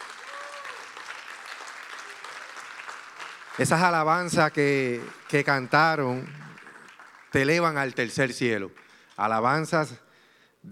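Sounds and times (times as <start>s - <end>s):
audience applause: 0.0s - 8.0s
speech: 3.6s - 6.5s, 7.3s - 10.0s.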